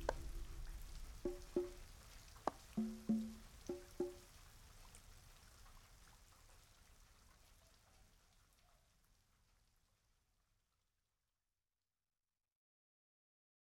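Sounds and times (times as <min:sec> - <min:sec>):
rain: 0:00.0 - 0:10.7.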